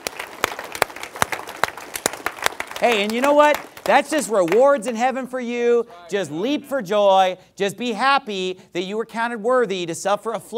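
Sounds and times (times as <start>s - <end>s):
church congregation applauding: 0.0s - 5.0s
speech: 2.8s - 10.5s.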